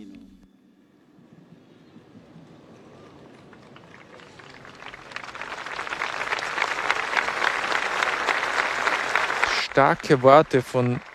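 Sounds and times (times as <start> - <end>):
crowd cheering and applauding: 1.7 - 11.1
speech: 9.8 - 11.1.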